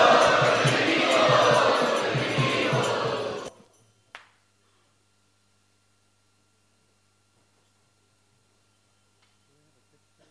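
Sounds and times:
crowd loudly chanting in welcome of a guest speaker: 0.0s - 3.5s.

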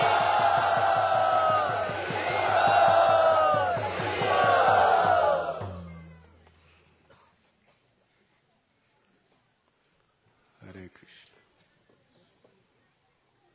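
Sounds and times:
crowd at a Hare Krishna gathering shouting a loud welcome: 0.0s - 6.2s.

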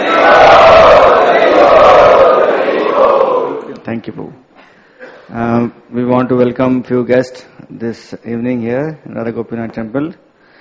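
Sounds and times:
temple audience at Radha Gopinath Temple chanting in thanks: 0.0s - 3.8s
speech: 5.3s - 10.2s.

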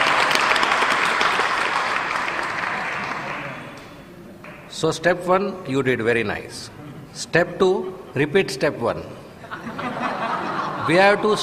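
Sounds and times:
audience clapping: 0.0s - 4.7s
speech: 4.8s - 9.2s, 10.9s - 11.4s
laughter: 9.4s - 11.4s.

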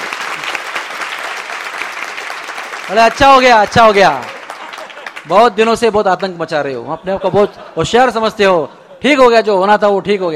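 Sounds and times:
audience clapping during a devotional story session: 0.0s - 6.4s
speech: 2.9s - 4.4s, 5.2s - 10.3s
laughter: 4.1s - 5.4s, 6.5s - 9.4s.

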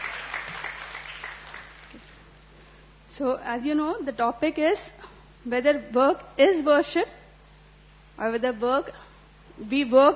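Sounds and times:
audience applause: 0.0s - 2.2s
speech: 3.2s - 7.2s, 8.2s - 9.0s, 9.6s - 10.1s.

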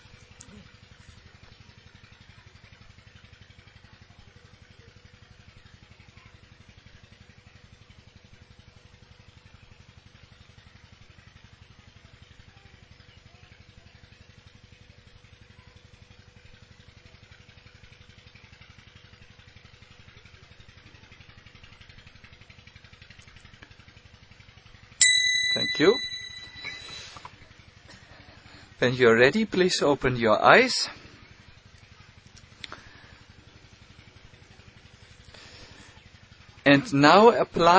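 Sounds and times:
water pump running: 0.0s - 25.0s, 30.5s - 37.7s
speech: 25.8s - 26.0s, 28.8s - 31.0s, 36.8s - 37.7s.

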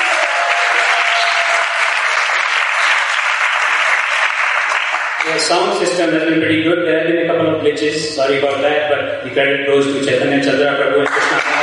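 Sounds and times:
crowd clapping: 0.0s - 5.5s, 11.0s - 11.6s
speech: 5.3s - 11.1s.

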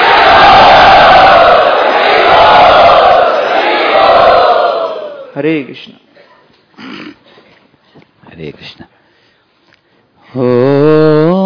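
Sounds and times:
crowd chanting in unison to welcome a speaker: 0.0s - 5.3s
speech: 5.4s - 6.0s, 8.4s - 8.9s, 10.3s - 11.0s.

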